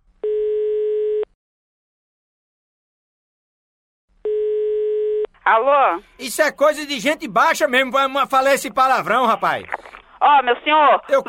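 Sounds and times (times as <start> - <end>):
telephone ringback tone: 0.2 - 1.3, 4.3 - 5.3
speech: 5.5 - 11.2.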